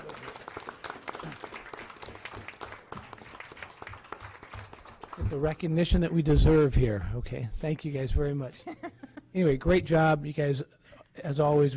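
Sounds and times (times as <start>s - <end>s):
audience applause: 0.0s - 5.6s
speech: 5.2s - 11.7s.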